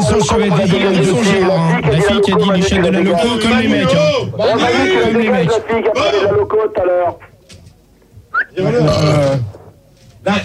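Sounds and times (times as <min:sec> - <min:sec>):
speech: 0:00.2 - 0:07.3, 0:08.5 - 0:09.6, 0:10.2 - 0:10.4
pig burping: 0:08.4 - 0:09.5.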